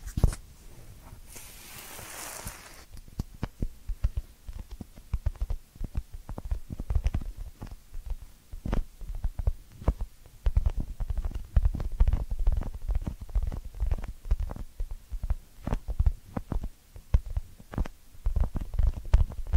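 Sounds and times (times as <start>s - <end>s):
ear cleaning crackles and soft thumps: 0.0s - 19.5s
rubbing hiss: 1.2s - 2.9s.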